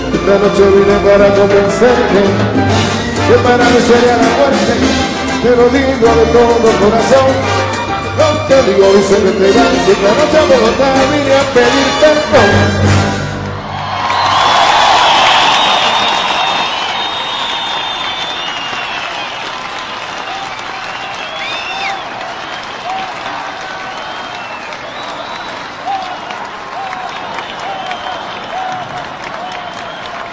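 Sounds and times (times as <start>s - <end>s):
speech: 0.2s - 7.6s, 8.2s - 13.0s
audience applause for orchestra: 13.2s - 30.3s
cheers and whoops: 13.4s - 30.3s.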